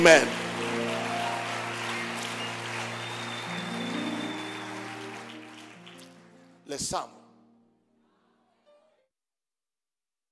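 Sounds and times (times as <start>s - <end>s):
speech: 0.0s - 0.4s, 6.7s - 7.2s
audience applause: 0.0s - 6.4s.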